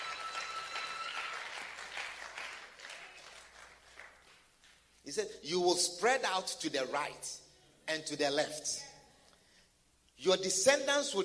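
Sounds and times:
audience applause: 0:00.0 - 0:04.4
speech: 0:05.1 - 0:08.9, 0:10.2 - 0:11.2.

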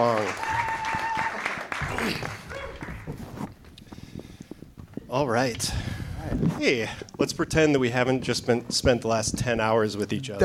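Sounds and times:
speech: 0:00.0 - 0:00.5, 0:05.1 - 0:10.4
applause greeting two people on stage: 0:00.0 - 0:03.2.

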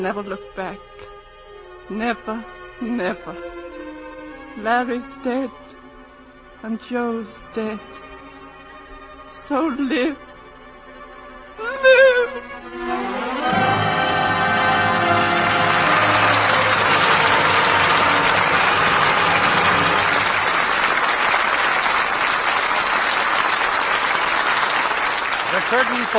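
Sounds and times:
speech: 0:00.0 - 0:01.2, 0:01.9 - 0:03.8, 0:04.6 - 0:05.8, 0:06.6 - 0:08.1, 0:09.3 - 0:10.3, 0:11.6 - 0:13.7, 0:25.7 - 0:26.1
theater audience applause after play: 0:13.0 - 0:26.1.

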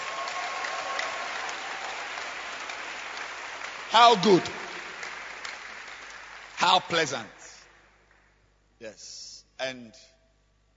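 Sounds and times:
audience clapping hands: 0:00.0 - 0:08.4
speech: 0:03.9 - 0:04.6, 0:06.6 - 0:07.5, 0:08.8 - 0:10.1.

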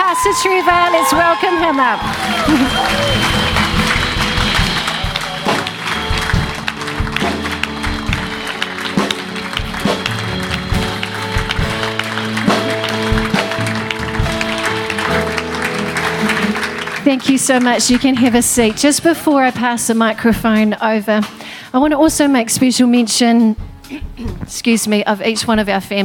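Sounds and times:
audience cheering: 0:00.0 - 0:18.4
speech: 0:00.2 - 0:03.8, 0:17.1 - 0:26.0
laughter: 0:00.9 - 0:03.8, 0:12.4 - 0:13.2.

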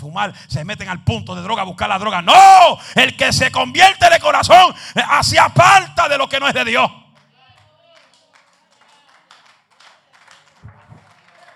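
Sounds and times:
speech: 0:00.0 - 0:07.0
audience clapping: 0:07.1 - 0:11.5.

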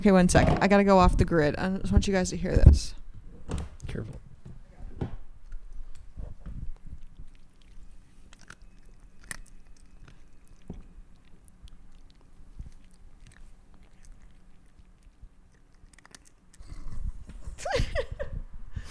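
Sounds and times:
speech: 0:00.0 - 0:04.2
loud chewing: 0:06.7 - 0:16.9.

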